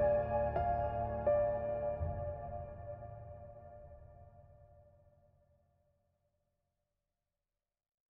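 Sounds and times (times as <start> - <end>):
halloween menu music: 0.0 - 3.8.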